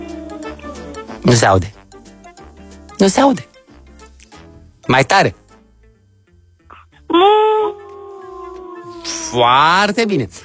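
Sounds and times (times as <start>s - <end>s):
voice imitating a wolf howl: 0.0s - 1.1s, 7.1s - 9.7s
speech: 1.2s - 1.8s, 3.0s - 3.5s, 4.9s - 5.4s, 7.1s - 7.5s, 9.3s - 10.4s.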